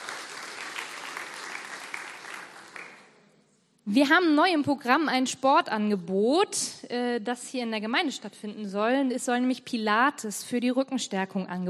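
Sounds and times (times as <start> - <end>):
audience applause: 0.0 - 3.1
speech: 3.9 - 11.6.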